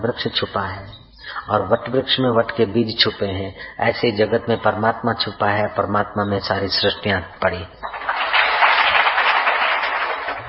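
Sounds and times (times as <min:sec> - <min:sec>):
speech: 0:00.0 - 0:07.9
audience clapping: 0:07.8 - 0:10.4.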